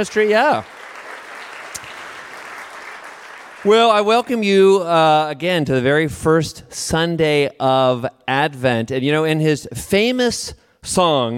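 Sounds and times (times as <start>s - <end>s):
speech: 0.0s - 0.8s, 3.6s - 11.3s
church congregation applauding volunteers: 0.0s - 4.4s.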